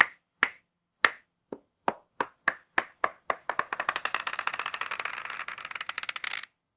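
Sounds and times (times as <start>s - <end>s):
bingo balls: 1.9s - 6.5s.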